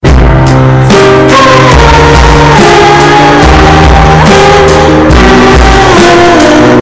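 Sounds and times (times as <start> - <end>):
sad music with boosted bass: 0.0 - 6.7.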